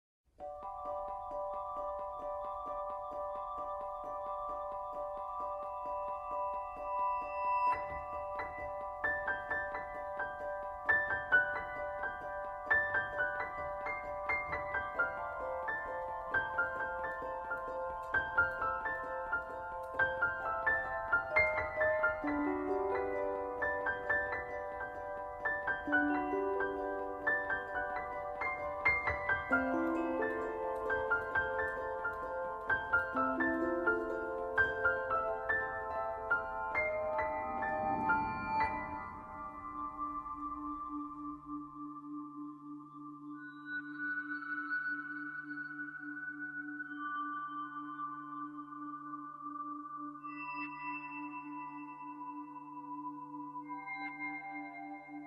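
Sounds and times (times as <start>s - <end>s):
ambient music: 0.4s - 55.2s.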